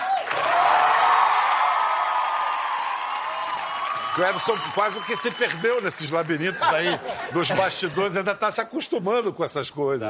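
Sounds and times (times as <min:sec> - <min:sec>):
audience applause and cheering: 0:00.0 - 0:06.9
speech: 0:04.2 - 0:10.0
laughter: 0:05.9 - 0:08.4.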